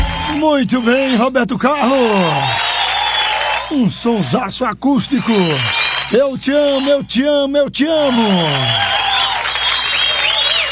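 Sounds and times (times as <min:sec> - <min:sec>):
audience applause: 0:00.0 - 0:01.2, 0:01.8 - 0:04.4, 0:05.0 - 0:07.0, 0:07.8 - 0:10.6
speech: 0:00.3 - 0:02.6, 0:03.7 - 0:09.0.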